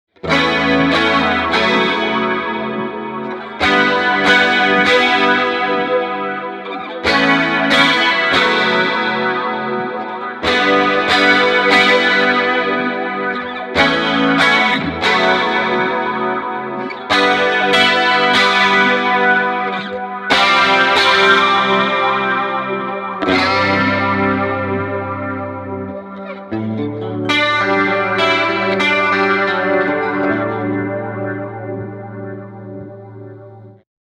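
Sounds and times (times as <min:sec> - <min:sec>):
big clean electric guitar through Valeton GP 200JR: 0:00.0 - 0:33.8.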